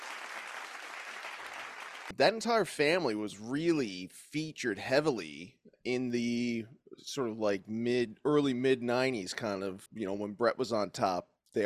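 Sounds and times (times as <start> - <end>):
applause: 0.0 - 2.1
speech: 2.1 - 11.6.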